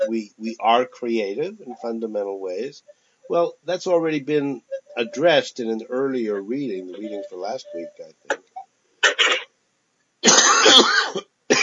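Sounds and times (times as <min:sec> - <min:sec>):
speech: 0:00.1 - 0:08.5
person clearing throat with something stuck in the throat: 0:09.0 - 0:09.4, 0:10.2 - 0:11.6.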